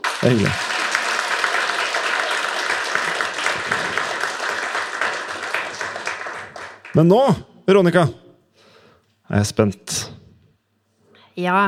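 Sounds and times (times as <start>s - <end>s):
live audience applause: 0.0s - 7.2s
speech: 0.2s - 0.7s, 6.9s - 8.2s, 9.3s - 10.0s, 11.4s - 11.6s.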